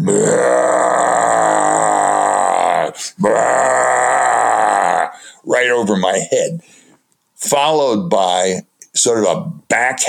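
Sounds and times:
man imitating deep roars: 0:00.0 - 0:05.2
speech: 0:00.1 - 0:00.7, 0:05.7 - 0:06.7, 0:07.4 - 0:10.0.

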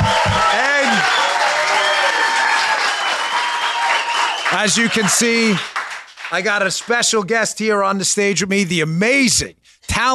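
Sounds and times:
audience whoops: 0:00.0 - 0:04.6
large live audience cheering and applauding: 0:00.0 - 0:07.1
speech: 0:04.6 - 0:10.1.

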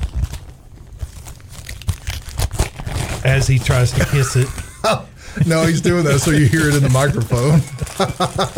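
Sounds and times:
gift wrapping paper on a Costco present being torn open: 0:00.0 - 0:04.6, 0:05.5 - 0:08.5
speech: 0:03.2 - 0:08.5
laughter: 0:03.8 - 0:08.5.

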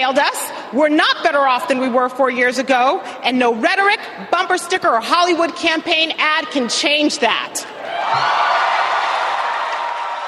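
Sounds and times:
speech: 0:00.0 - 0:08.7
large crowd cheering: 0:07.8 - 0:10.2.

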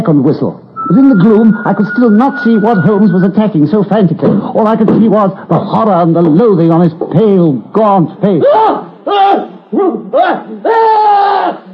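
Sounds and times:
speech: 0:00.0 - 0:11.6
horrible scream: 0:10.2 - 0:11.7.

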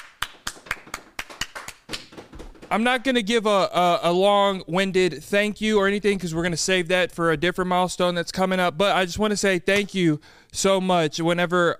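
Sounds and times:
clapping: 0:00.0 - 0:02.7
speech: 0:02.7 - 0:11.7.

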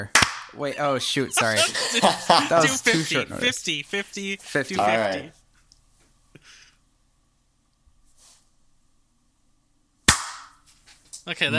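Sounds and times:
speech: 0:00.0 - 0:05.4, 0:11.2 - 0:11.5
hand claps: 0:00.1 - 0:00.5
laughter: 0:00.6 - 0:05.3.

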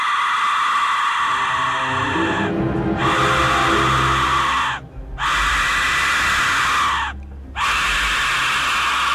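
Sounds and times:
shrill death whistle screaming: 0:00.9 - 0:09.1
low rumbling undertone: 0:01.3 - 0:06.0.

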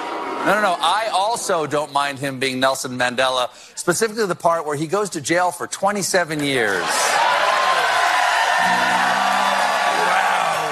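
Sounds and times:
speech: 0:00.4 - 0:07.3, 0:08.6 - 0:09.2
studio audience applauding and cheering: 0:06.5 - 0:10.7.

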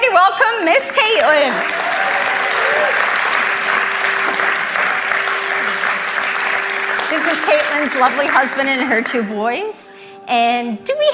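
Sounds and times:
audience applause: 0:01.0 - 0:09.2
speech: 0:07.8 - 0:11.1.

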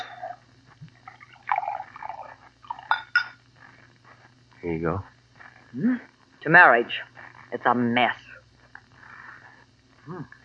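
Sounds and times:
low steady hum: 0:00.0 - 0:10.4
bourbon being poured into a glass: 0:01.0 - 0:03.3
speech: 0:04.6 - 0:05.1, 0:05.7 - 0:08.3, 0:10.1 - 0:10.4.

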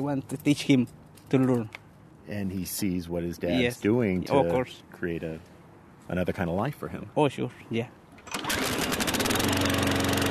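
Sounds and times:
speech: 0:00.0 - 0:05.5, 0:06.1 - 0:08.0
lawn mower running: 0:08.2 - 0:10.2.

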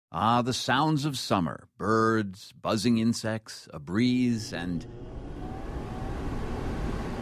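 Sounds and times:
speech: 0:00.1 - 0:05.2
air conditioning unit running: 0:04.4 - 0:07.2.

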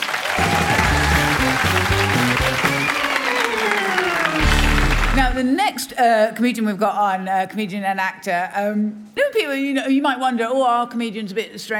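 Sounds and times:
audience applause: 0:00.0 - 0:05.4
speech: 0:05.2 - 0:11.7.

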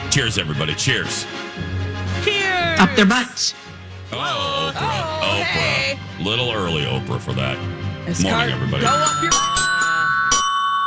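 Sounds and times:
speech: 0:00.2 - 0:01.7, 0:02.8 - 0:09.6
doorbell-style electronic chime sound effect: 0:08.8 - 0:10.8.

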